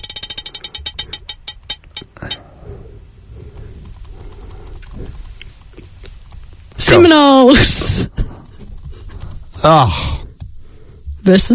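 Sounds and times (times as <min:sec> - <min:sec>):
spinning prize wheel clicking: 0:00.0 - 0:02.4
speech: 0:06.9 - 0:08.2, 0:09.6 - 0:10.2, 0:11.2 - 0:11.5.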